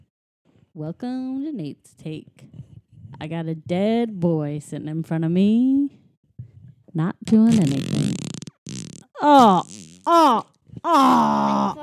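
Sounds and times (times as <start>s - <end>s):
speech: 0.8s - 6.0s, 6.9s - 8.2s, 9.2s - 11.8s
voice imitating a fart: 7.3s - 11.3s
wavering groans: 9.2s - 11.5s.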